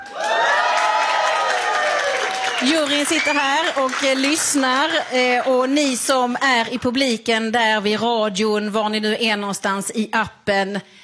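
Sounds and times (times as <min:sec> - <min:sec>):
studio audience cheering: 0:00.0 - 0:05.7
speech: 0:02.6 - 0:11.0.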